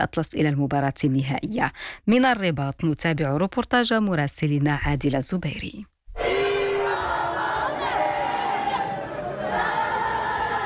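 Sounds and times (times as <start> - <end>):
speech: 0.0 - 5.9
large stadium crowd chanting in unison: 6.2 - 10.6.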